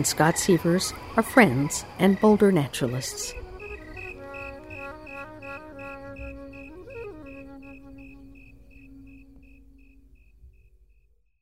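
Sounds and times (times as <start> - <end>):
speech: 0.0 - 3.4
snowy tree cricket song: 0.0 - 11.1
music: 2.8 - 11.3.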